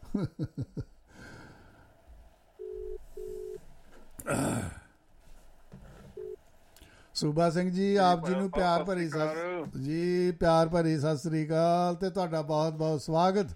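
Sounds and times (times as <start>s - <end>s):
speech: 0.2s - 0.9s, 4.2s - 4.8s, 7.2s - 13.5s
telephone line pulsed tones on a Punjabi radio show: 2.6s - 3.6s, 6.2s - 6.4s.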